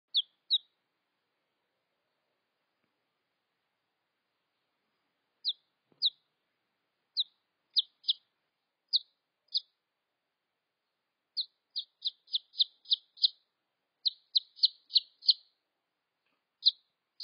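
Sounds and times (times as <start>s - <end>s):
red junglefowl chick peeps: 0.1s - 0.8s, 5.4s - 6.2s, 7.1s - 8.3s, 8.9s - 9.8s, 11.4s - 13.4s, 14.0s - 15.5s, 16.6s - 17.2s.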